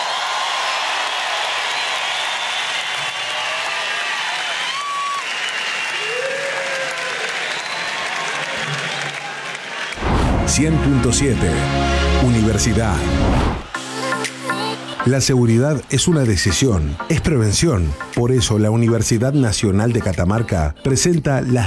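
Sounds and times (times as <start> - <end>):
audience applause: 0.0 - 11.0
speech: 10.6 - 13.6, 15.0 - 21.6.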